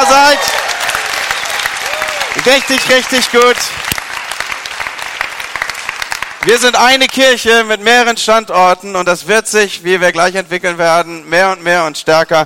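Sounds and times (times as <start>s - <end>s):
crowd applauding: 0.0s - 7.4s
speech: 2.4s - 3.9s, 6.5s - 12.4s.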